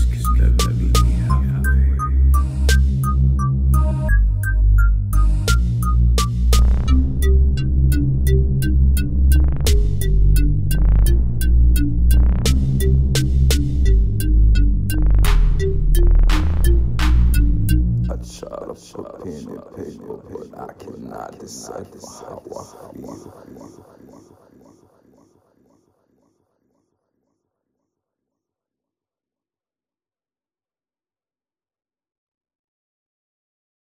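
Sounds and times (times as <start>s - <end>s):
music beat: 0.0s - 23.2s.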